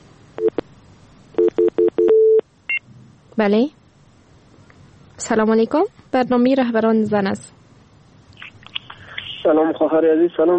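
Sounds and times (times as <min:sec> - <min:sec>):
telephone signal tones of an incoming call to a radio phone-in: 0:01.4 - 0:02.8
speech: 0:03.4 - 0:03.8, 0:05.2 - 0:07.6, 0:09.5 - 0:10.5.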